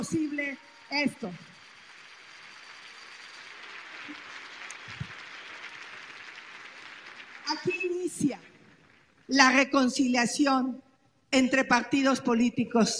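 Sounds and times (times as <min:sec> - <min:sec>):
speech: 0:00.0 - 0:01.5, 0:07.5 - 0:08.5, 0:09.3 - 0:12.9
audience applause: 0:00.0 - 0:09.3.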